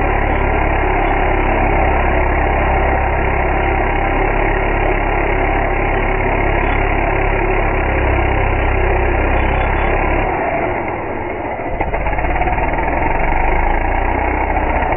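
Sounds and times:
chainsaw engine running in Dingmans Ferry PA: 0.0 - 14.9.

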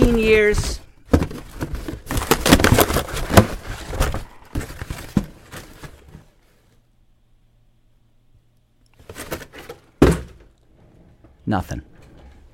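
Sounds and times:
speech: 0.1 - 0.8, 11.5 - 11.9
cardboard box being opened with rustling and tearing: 1.2 - 6.3.

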